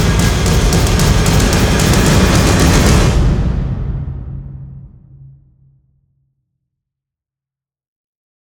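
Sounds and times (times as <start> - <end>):
drums: 0.0 - 5.7.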